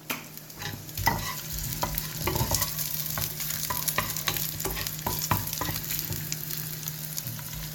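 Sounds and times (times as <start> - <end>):
chorizo sizzling in a pan with tomato, salt and oil: 0.0 - 7.7.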